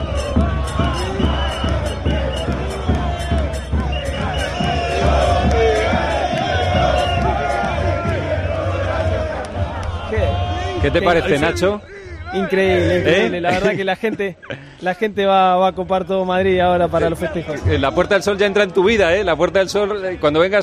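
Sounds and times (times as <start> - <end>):
River football fans chanting in Puerta del Sol, Madrid: 0.0 - 13.7
laughter: 10.2 - 15.2, 17.0 - 18.0
speech: 10.8 - 20.6.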